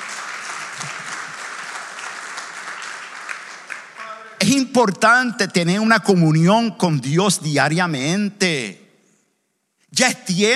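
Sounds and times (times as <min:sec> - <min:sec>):
applause: 0:00.0 - 0:04.4
speech: 0:04.5 - 0:08.8, 0:09.9 - 0:10.5.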